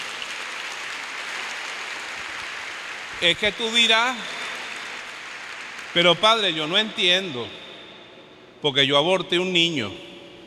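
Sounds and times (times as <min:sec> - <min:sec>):
crowd applause: 0:00.0 - 0:06.6
speech: 0:03.2 - 0:04.4, 0:06.0 - 0:07.6, 0:08.6 - 0:10.1.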